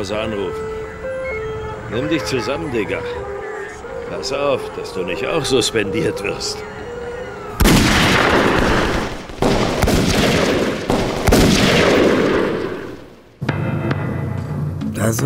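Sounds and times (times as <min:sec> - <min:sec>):
speech: 0:00.0 - 0:00.8, 0:01.9 - 0:03.3, 0:04.1 - 0:06.8, 0:15.0 - 0:15.2
steady hum: 0:00.0 - 0:14.6
gunshots: 0:07.6 - 0:14.2.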